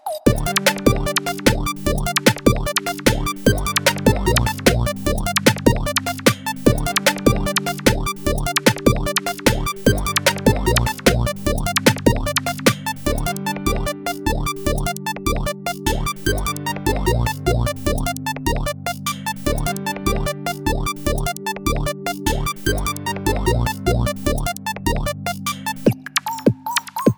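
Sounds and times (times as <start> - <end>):
instrumental music: 0.3 - 27.0.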